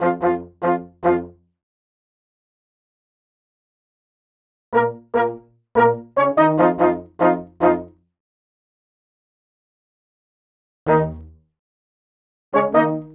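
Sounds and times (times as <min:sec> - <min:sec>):
horns: 0:00.0 - 0:01.3, 0:04.8 - 0:07.8, 0:12.6 - 0:13.1.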